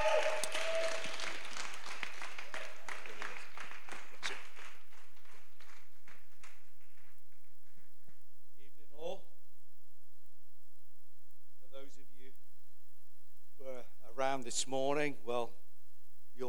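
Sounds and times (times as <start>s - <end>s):
audience applause welcoming a speaker at a church gathering: 0.0s - 7.8s
speech: 14.4s - 15.6s.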